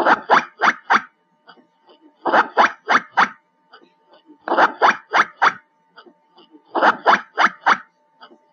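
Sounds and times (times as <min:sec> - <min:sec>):
black giant squirrel calls: 0:00.0 - 0:01.1, 0:02.2 - 0:03.4, 0:04.4 - 0:05.6, 0:06.7 - 0:07.9.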